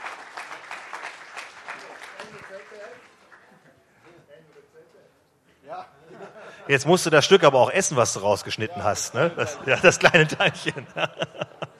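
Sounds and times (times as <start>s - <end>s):
audience applause: 0.0s - 3.5s
speech: 2.6s - 3.2s, 4.1s - 11.5s
laughter: 6.0s - 7.3s, 8.1s - 11.7s.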